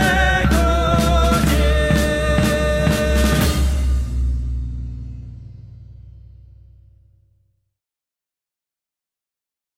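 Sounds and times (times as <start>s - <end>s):
national anthem: 0.0s - 6.3s.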